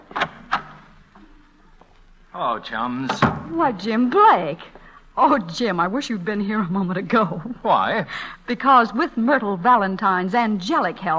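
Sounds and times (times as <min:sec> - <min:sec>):
door opening: 0:00.0 - 0:01.2, 0:03.0 - 0:03.6
speech: 0:02.4 - 0:11.1.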